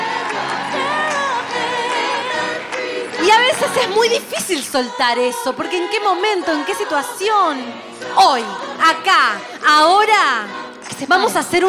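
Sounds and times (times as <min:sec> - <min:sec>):
audience applause: 0:00.0 - 0:04.2
speech: 0:03.7 - 0:11.6.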